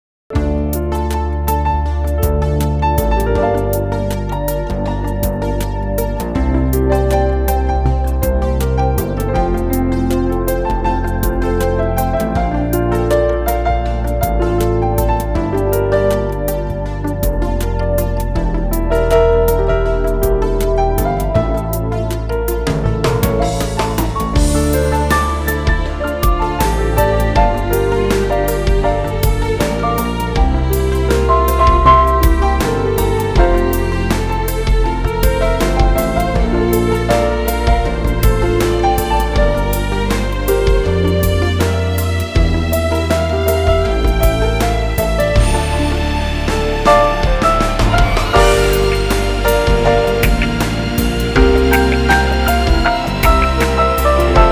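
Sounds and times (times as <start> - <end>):
piano: 0.3 - 54.4.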